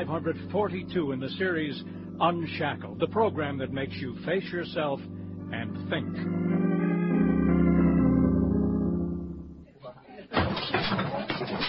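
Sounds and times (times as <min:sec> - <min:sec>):
speech: 0:00.0 - 0:06.6
sustained organ-like music: 0:00.0 - 0:09.7
noisy clatter of falling objects: 0:10.3 - 0:11.6.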